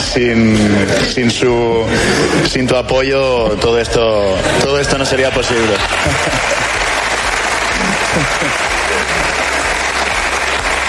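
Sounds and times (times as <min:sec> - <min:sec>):
speech: 0:00.2 - 0:06.8, 0:08.2 - 0:09.1
laughter: 0:00.6 - 0:02.9, 0:04.4 - 0:10.8
crowd applauding: 0:04.5 - 0:10.8.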